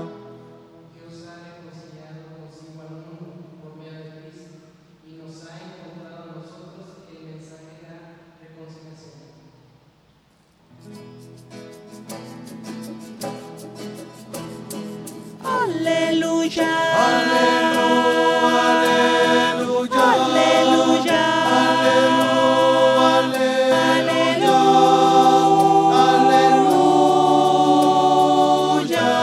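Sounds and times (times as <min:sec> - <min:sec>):
voices: 0:15.5 - 0:29.2.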